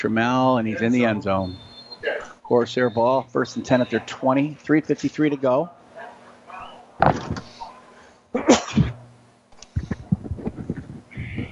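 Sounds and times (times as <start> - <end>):
speech: 0.0 - 5.8, 7.0 - 7.4
sneeze: 8.4 - 9.0.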